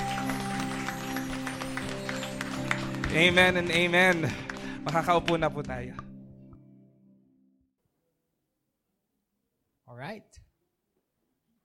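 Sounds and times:
audience applause: 0.0s - 5.5s
speech: 3.1s - 6.0s, 10.0s - 10.4s.

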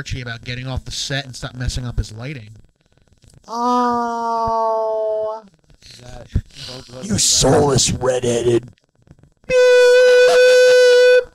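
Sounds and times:
speech: 0.0s - 2.6s, 3.5s - 8.8s, 9.5s - 10.8s
air horn censorship sound effect: 9.5s - 11.3s.

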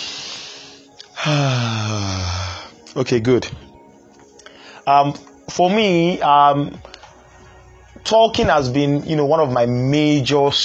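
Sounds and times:
deep breath: 0.0s - 2.8s, 4.4s - 4.8s
speech: 1.2s - 2.2s, 3.0s - 3.7s, 4.8s - 6.9s, 8.1s - 10.6s.

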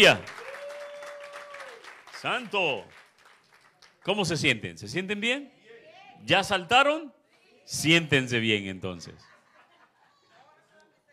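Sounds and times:
speech: 0.0s - 0.3s, 2.2s - 3.0s, 4.0s - 5.6s, 6.2s - 9.3s
audience applause: 0.0s - 4.1s
laughter: 9.2s - 10.7s.

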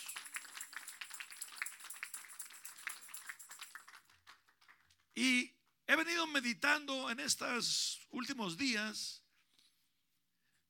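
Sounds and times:
audience applauding: 0.0s - 5.1s
speech: 5.2s - 9.2s.

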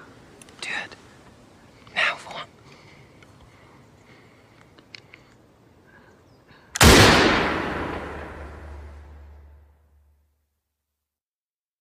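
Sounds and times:
gunshot with ringing echo in an audio drama: 6.8s - 9.4s.

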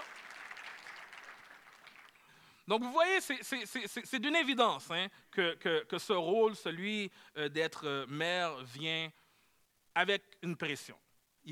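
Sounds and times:
audience applause: 0.0s - 2.2s
speech: 2.7s - 9.2s, 10.0s - 11.4s.

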